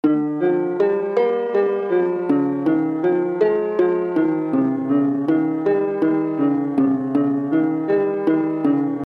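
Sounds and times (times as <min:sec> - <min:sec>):
melody: 0:00.0 - 0:09.0.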